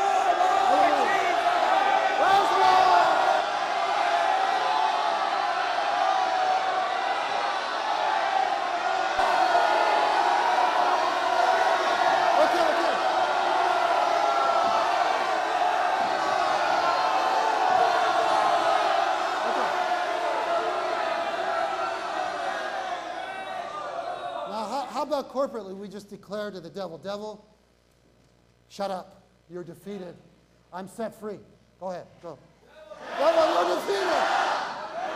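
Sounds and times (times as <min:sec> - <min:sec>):
crowd standing and shouting: 0:00.0 - 0:24.5, 0:32.8 - 0:35.1
speech: 0:25.2 - 0:27.5, 0:28.7 - 0:32.5, 0:33.2 - 0:34.4.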